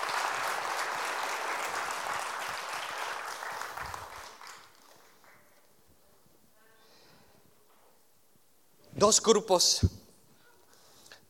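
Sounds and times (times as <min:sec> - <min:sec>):
audience applause: 0:00.0 - 0:05.6
speech: 0:09.0 - 0:10.0.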